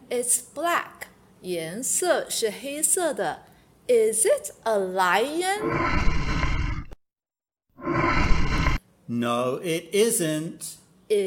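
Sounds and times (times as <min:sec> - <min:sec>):
speech: 0:00.1 - 0:06.2, 0:09.1 - 0:11.2
gorilla roar: 0:05.6 - 0:07.0, 0:07.8 - 0:08.8.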